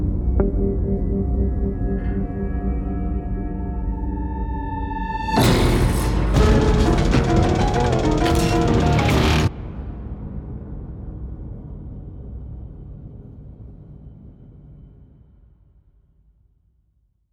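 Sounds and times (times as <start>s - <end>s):
musical stinger: 0.2s - 9.6s.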